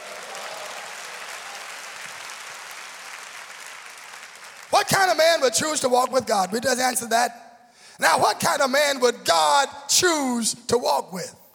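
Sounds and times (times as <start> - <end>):
audience clapping hands: 0.0 - 7.1
speech: 4.8 - 7.4, 8.0 - 11.4.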